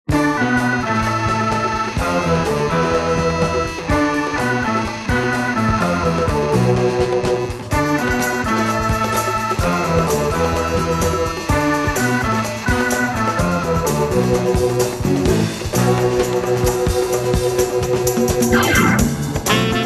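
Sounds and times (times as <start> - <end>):
motorcycle funk music: 0.1 - 19.8.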